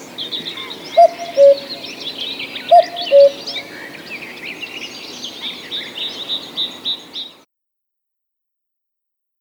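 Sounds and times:
cuckoo calling its two-note cu-coo: 0.0s - 7.3s.

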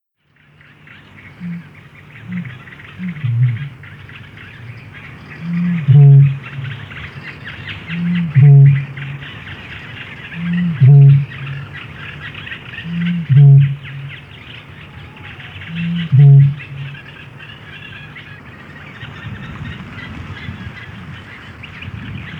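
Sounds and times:
bittern giving low grunts and deep resonant booms: 5.5s - 6.9s, 8.0s - 9.2s, 13.0s - 14.2s, 15.8s - 17.0s.

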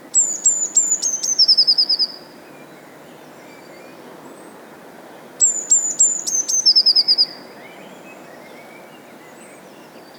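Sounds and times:
bird song with trill: 0.1s - 4.5s, 5.4s - 10.1s.

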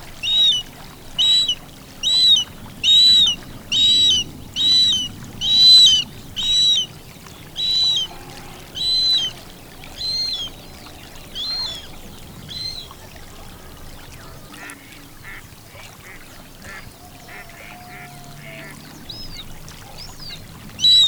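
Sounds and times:
bird song of clear whistled notes in marsh habitat: 0.2s - 6.9s, 7.6s - 8.2s, 8.8s - 9.4s, 10.0s - 10.6s, 20.8s - 21.0s.

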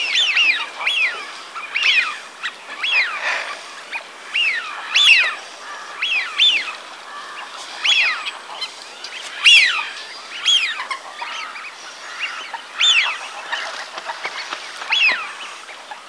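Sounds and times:
Eurasian wigeon whistling calls: 0.0s - 13.6s, 14.8s - 15.6s.

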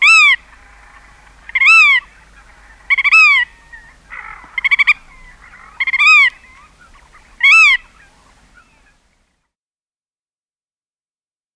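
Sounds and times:
black-tailed godwit nasal calls: 0.0s - 9.0s.

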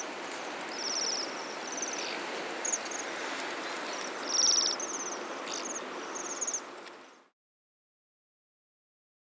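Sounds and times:
waxwing calling: 0.7s - 6.7s.

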